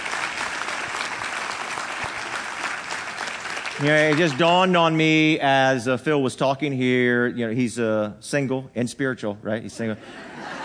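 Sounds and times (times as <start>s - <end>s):
audience applause: 0.0s - 5.0s
speech: 3.8s - 10.5s
laughter: 10.0s - 10.6s.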